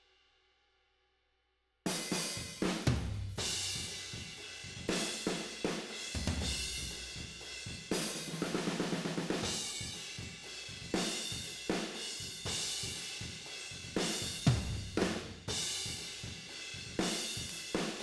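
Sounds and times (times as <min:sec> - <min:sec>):
tom drums with overheads and room: 0:01.9 - 0:18.0.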